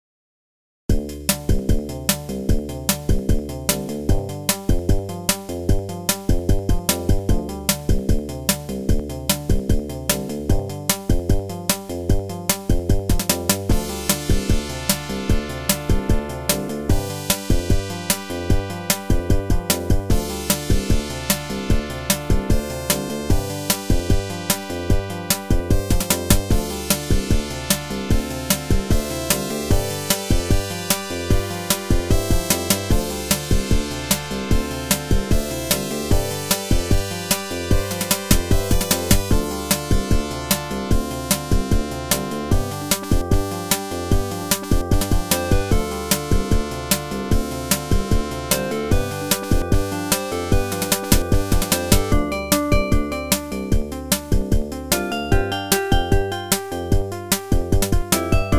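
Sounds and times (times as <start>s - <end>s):
AdLib OPL2 FM synth music: 1.3s - 58.5s.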